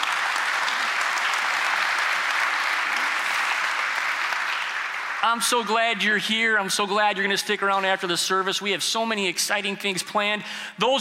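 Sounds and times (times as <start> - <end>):
audience clapping: 0.0 - 8.6
speech: 5.2 - 10.9.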